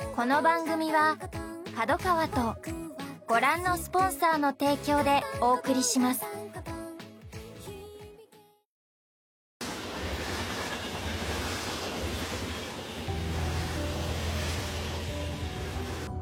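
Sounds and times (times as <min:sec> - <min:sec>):
speech: 0:00.2 - 0:06.6
passing train: 0:09.6 - 0:16.1.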